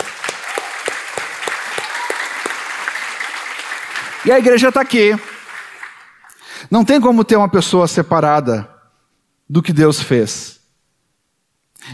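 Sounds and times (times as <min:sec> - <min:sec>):
audience applause: 0:00.0 - 0:06.4
speech: 0:04.2 - 0:05.3, 0:06.7 - 0:08.7, 0:09.5 - 0:10.6.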